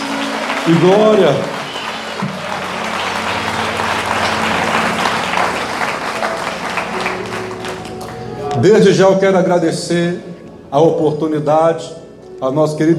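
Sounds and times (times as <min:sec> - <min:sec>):
audience applauding: 0:00.0 - 0:08.7
speech: 0:00.7 - 0:01.6, 0:08.6 - 0:12.9.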